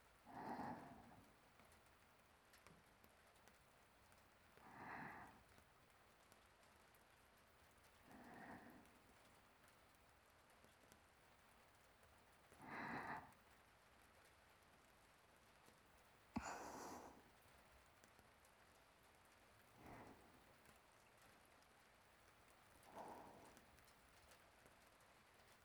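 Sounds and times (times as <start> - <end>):
sleeping breathing: 0.3 - 1.3, 4.6 - 5.6, 8.1 - 9.0, 12.6 - 13.4, 16.4 - 17.3, 19.8 - 20.7, 22.8 - 23.9.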